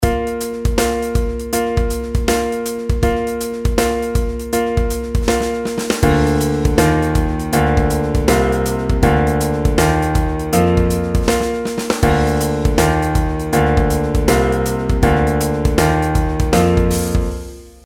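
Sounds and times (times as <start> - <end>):
stepwise pitch patterns: 0.8 - 17.4.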